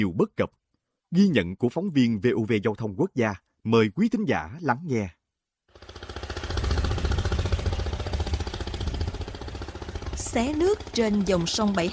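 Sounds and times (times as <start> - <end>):
speech: 0.0 - 5.2, 10.3 - 11.9
small river boat petrol engine chugging: 5.7 - 11.9.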